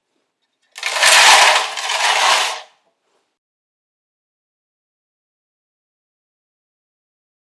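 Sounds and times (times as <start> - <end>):
metal box sliding: 0.8 - 2.7.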